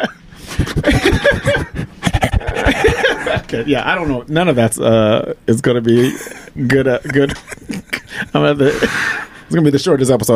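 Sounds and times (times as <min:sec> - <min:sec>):
laughter: 0:00.0 - 0:04.3, 0:05.8 - 0:09.5
heavy breathing into the microphone: 0:00.2 - 0:02.2, 0:08.1 - 0:09.5
speech: 0:00.8 - 0:01.7, 0:03.5 - 0:10.3.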